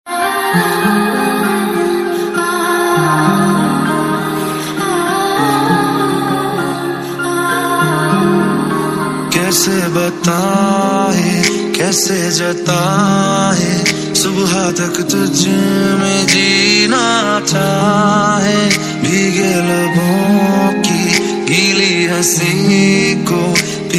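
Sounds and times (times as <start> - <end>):
sad Bollywood ringtone with background voice: 0.1 - 23.9.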